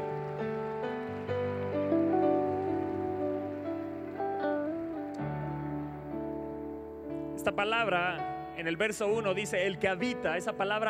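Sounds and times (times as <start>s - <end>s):
audience applause: 0.0s - 6.1s
speech: 7.4s - 10.8s.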